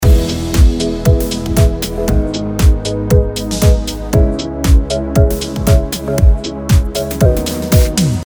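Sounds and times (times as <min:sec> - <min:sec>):
music loop: 0:00.0 - 0:08.2.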